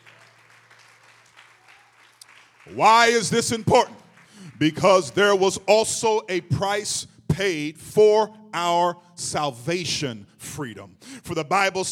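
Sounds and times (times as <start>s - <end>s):
audience clapping hands: 0.0s - 5.6s
speech: 2.6s - 4.0s, 4.6s - 11.9s.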